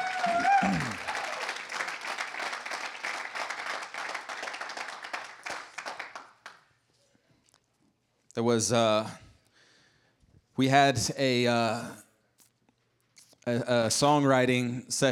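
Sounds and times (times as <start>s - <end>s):
audience applause: 0.0s - 6.6s
speech: 8.4s - 9.2s, 10.6s - 12.0s, 13.5s - 15.1s.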